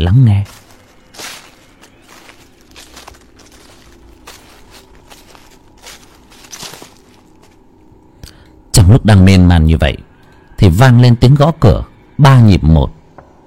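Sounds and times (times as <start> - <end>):
speech: 0.0 - 0.6, 8.9 - 13.0
slow footsteps crunching on dry leaves: 0.2 - 7.8.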